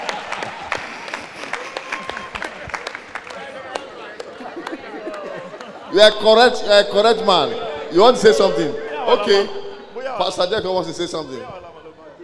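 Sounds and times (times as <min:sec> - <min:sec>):
audience clapping: 0:00.0 - 0:05.9
laughter: 0:00.0 - 0:12.2
speech: 0:06.0 - 0:09.6, 0:10.2 - 0:11.6.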